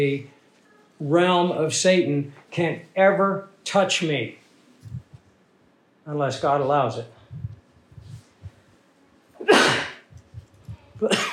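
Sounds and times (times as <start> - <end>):
speech: 0.0 - 0.4, 1.0 - 4.4, 6.1 - 7.4, 11.0 - 11.3
person coughing: 9.4 - 10.1, 11.0 - 11.3.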